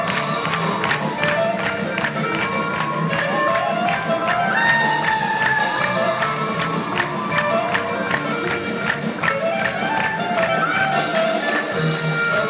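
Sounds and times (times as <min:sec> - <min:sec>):
live klezmer music: 0:00.0 - 0:12.4
lively audience cheering and shouting: 0:00.0 - 0:12.4.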